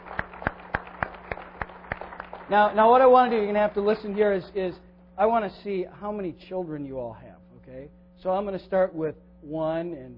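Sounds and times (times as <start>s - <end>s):
audience applause for mothers: 0.0s - 4.4s
speech: 2.5s - 10.1s.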